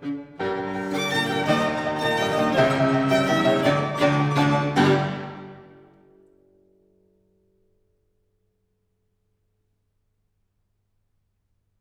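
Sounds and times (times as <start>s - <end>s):
violin playing a sonata allegro in G major: 0.0s - 5.9s
piano playing a sonata allegro in G major: 0.0s - 6.1s.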